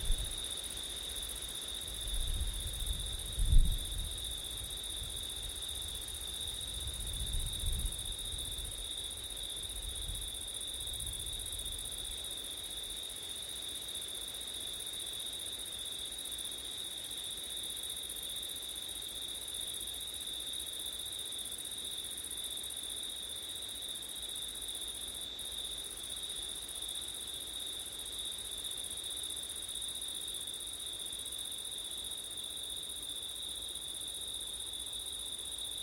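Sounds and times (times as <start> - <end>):
wind noise: 0.0 - 0.4, 2.0 - 5.2, 6.6 - 8.8
cricket chorus: 0.0 - 35.8.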